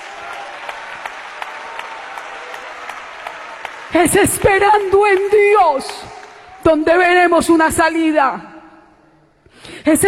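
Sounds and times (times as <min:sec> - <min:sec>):
audience applause: 0:00.0 - 0:06.7
speech: 0:03.9 - 0:08.5, 0:09.8 - 0:10.0.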